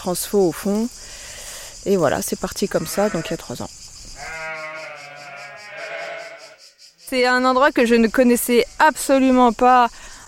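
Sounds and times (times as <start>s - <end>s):
speech: 0.0s - 1.2s, 1.8s - 4.4s, 7.1s - 10.1s
ewe bleating: 2.7s - 3.4s, 4.2s - 6.6s.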